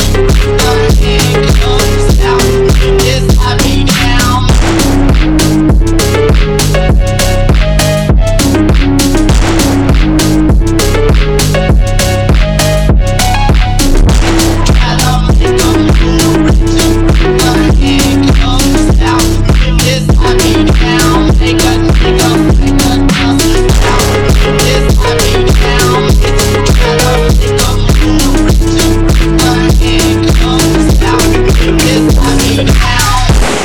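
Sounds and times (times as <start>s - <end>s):
phonk music: 0.0s - 33.6s.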